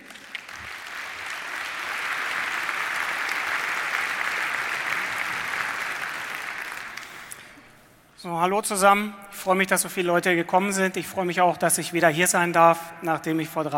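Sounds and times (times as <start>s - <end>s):
audience applause: 0.0s - 7.7s
speech: 8.2s - 13.7s.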